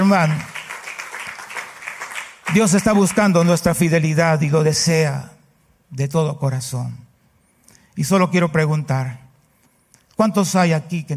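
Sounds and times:
audience applauding: 0.0s - 3.4s
speech: 0.1s - 0.5s, 2.5s - 5.3s, 5.9s - 7.0s, 8.0s - 9.2s, 10.2s - 11.1s.

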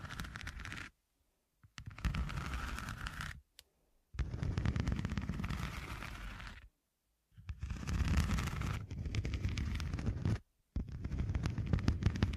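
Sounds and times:
rough scratching: 0.0s - 0.9s, 1.8s - 3.4s, 4.2s - 6.7s, 7.5s - 12.3s.

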